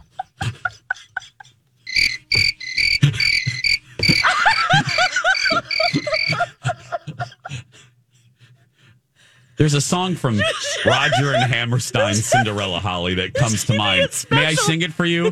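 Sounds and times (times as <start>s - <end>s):
laughter: 0.0s - 7.9s, 10.0s - 15.3s
crickets chirping: 1.9s - 6.5s
speech: 9.6s - 15.3s.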